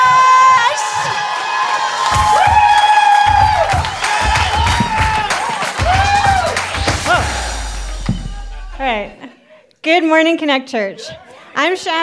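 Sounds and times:
audience cheering: 0.0 - 9.2
people clapping: 0.0 - 9.2
speech: 10.0 - 12.0.

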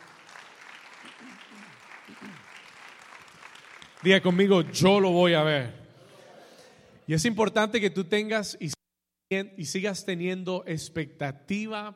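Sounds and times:
audience applause: 0.0 - 5.0
speech: 1.2 - 2.6, 4.0 - 5.8, 7.1 - 11.9.

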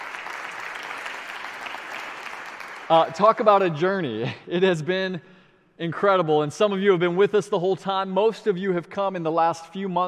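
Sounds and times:
audience applause: 0.0 - 3.8
speech: 2.9 - 10.0.

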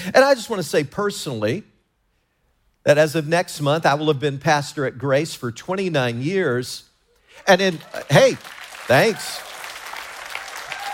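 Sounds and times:
speech: 0.0 - 1.7, 2.8 - 9.5
crowd applauding: 7.6 - 10.9.

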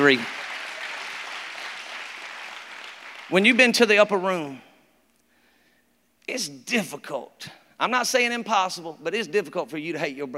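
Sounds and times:
speech: 0.0 - 0.4, 3.3 - 4.7, 6.3 - 10.3
crowd clapping: 0.0 - 3.8.

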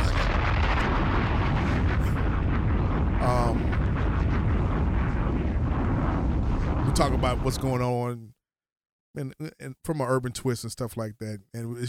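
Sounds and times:
bomb explosion sound effect: 0.0 - 8.0
speech: 7.0 - 8.3, 9.2 - 11.8.

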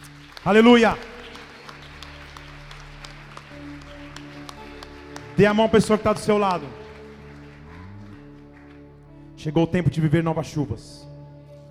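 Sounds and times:
audience applauding: 0.0 - 9.2
speech: 0.4 - 1.1, 5.4 - 6.8, 9.4 - 11.1.

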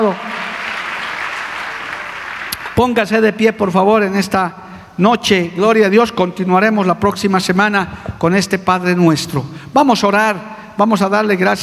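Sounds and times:
audience applause: 0.0 - 2.8
speech: 2.8 - 11.6.

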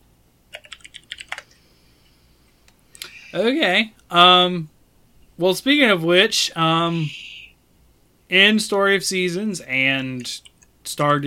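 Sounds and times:
typing on a computer keyboard: 0.5 - 1.6
speech: 3.3 - 4.7, 5.4 - 7.2, 8.3 - 11.2.

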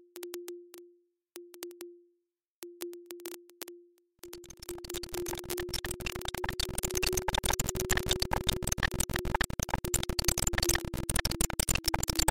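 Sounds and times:
mid-pitched glitch tone chopped into bursts with clicks: 4.3 - 12.2.

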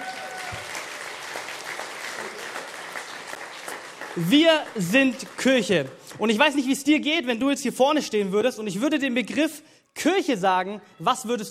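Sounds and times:
audience applause: 0.0 - 6.2
speech: 4.2 - 11.4.

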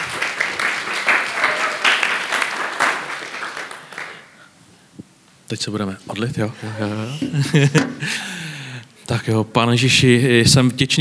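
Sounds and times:
laughter: 0.0 - 4.2, 6.6 - 8.7
audience applause: 0.0 - 4.4
speech: 5.5 - 8.3, 9.1 - 10.9.

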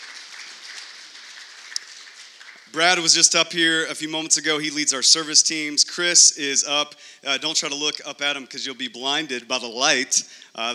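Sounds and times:
audience applause: 0.0 - 3.3
speech: 2.7 - 10.7.

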